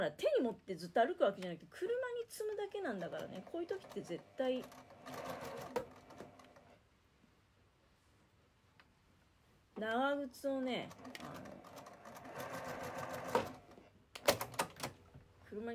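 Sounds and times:
speech: 0.0s - 5.8s, 9.8s - 11.5s, 15.5s - 15.7s
sewing machine stitching slowly: 2.9s - 6.7s, 10.8s - 14.9s.

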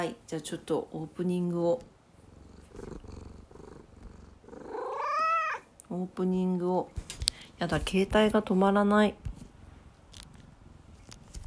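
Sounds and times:
speech: 0.0s - 1.9s, 2.8s - 3.2s, 5.9s - 9.2s
cat purring: 1.3s - 5.7s.

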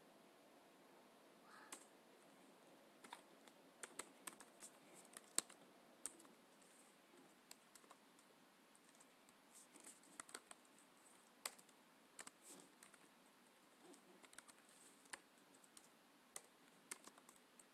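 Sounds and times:
soft steady hiss: 0.0s - 17.7s
computer keyboard typing: 3.0s - 6.7s, 7.3s - 13.1s, 13.8s - 17.7s.

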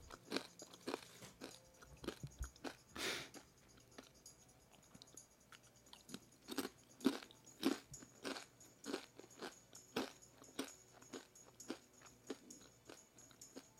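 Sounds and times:
person eating crunchy Don Tacos corn chips: 0.1s - 3.4s, 5.9s - 13.7s.

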